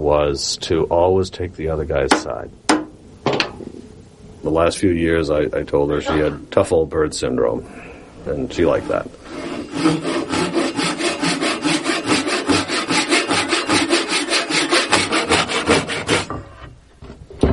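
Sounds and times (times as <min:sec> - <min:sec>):
speech: 0:00.0 - 0:02.6, 0:04.4 - 0:10.2
Japanese pull saw cutting wood: 0:08.6 - 0:16.5.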